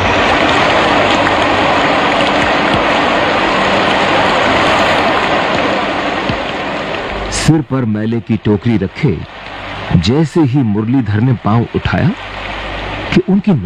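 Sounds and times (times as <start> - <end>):
heavy rain: 0.0 - 13.6
speech: 7.5 - 12.4, 13.1 - 13.6.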